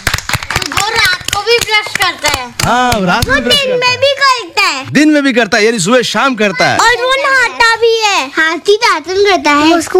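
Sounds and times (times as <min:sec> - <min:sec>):
children clapping loudly: 0:00.0 - 0:03.4
speech: 0:01.5 - 0:09.9.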